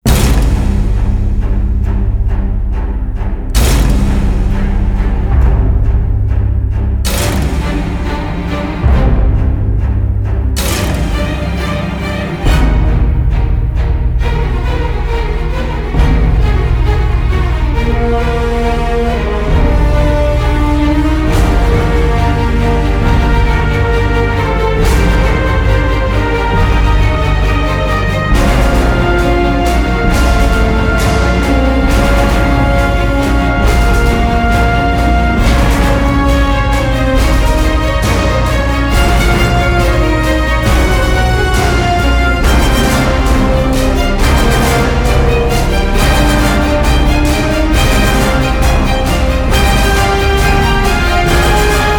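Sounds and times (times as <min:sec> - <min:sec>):
orchestra playing: 0:00.0 - 0:51.9.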